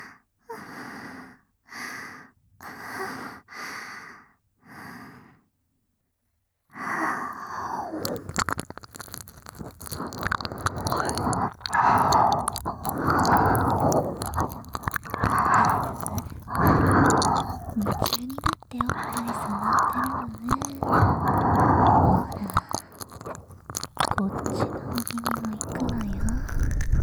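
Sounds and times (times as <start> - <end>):
ASMR ear licking: 7.9 - 27.0.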